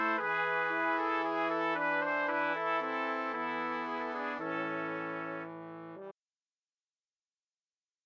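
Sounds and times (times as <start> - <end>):
brass quintet playing a pavane: 0.0 - 6.1.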